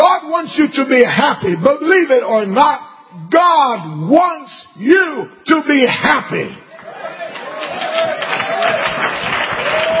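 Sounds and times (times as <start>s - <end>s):
speech: 0.4s - 6.6s
light scattered applause: 6.7s - 9.9s.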